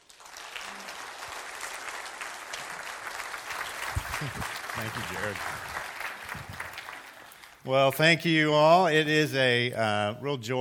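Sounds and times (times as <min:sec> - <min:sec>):
audience applause welcoming a speaker at a morning gathering: 0:00.0 - 0:07.7
speech: 0:04.2 - 0:06.4, 0:07.6 - 0:10.5.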